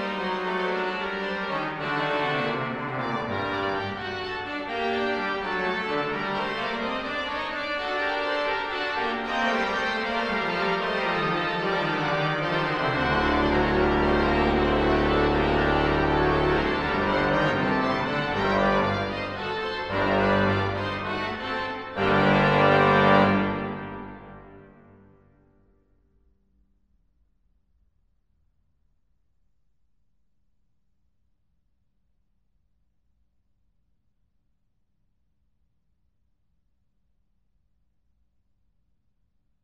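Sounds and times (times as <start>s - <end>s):
grand choeur piece in Bayeux Cathedral: 0.0s - 25.1s.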